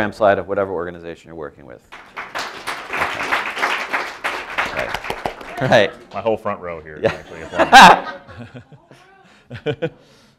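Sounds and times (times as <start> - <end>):
speech: 0.0 - 2.2, 4.8 - 10.2
audience applause: 2.0 - 6.3
laughter: 4.6 - 6.3, 6.9 - 10.1.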